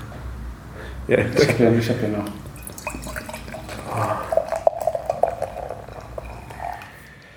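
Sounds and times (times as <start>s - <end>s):
speech: 1.1s - 2.5s
wheat beer being poured into a glass: 2.5s - 7.0s.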